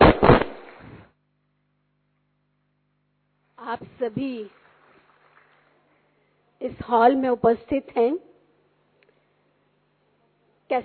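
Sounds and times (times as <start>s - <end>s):
speech: 3.7s - 4.6s, 6.7s - 8.3s
loud applause from hall audience: 4.5s - 5.8s.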